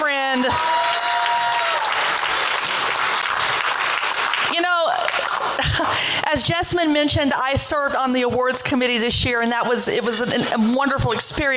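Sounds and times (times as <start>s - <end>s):
round of applause: 0.0s - 5.9s
speech: 0.4s - 0.7s, 6.4s - 11.5s
laughter: 5.4s - 6.0s.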